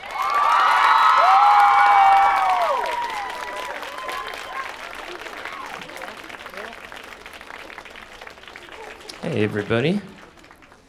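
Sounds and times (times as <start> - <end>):
audience shouts and whoops: 0.0 - 4.8
audience applauding guests at a film event: 0.0 - 10.8
speech: 9.4 - 10.2.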